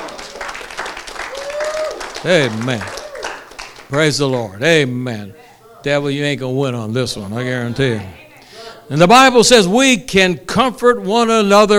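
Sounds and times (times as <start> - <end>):
audience applauding: 0.0 - 4.5
speech: 2.2 - 3.0, 3.9 - 8.2, 8.9 - 11.7.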